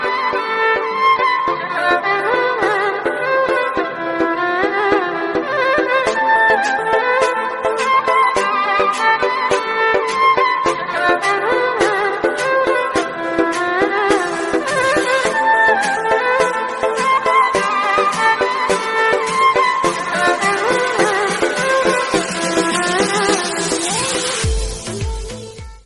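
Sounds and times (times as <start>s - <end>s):
Arabic ringtone melody: 0.1s - 25.0s.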